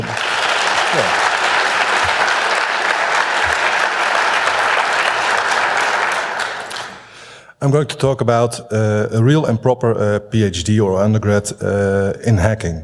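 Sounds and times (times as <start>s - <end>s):
audience applause: 0.0s - 7.1s
speech: 7.6s - 12.8s.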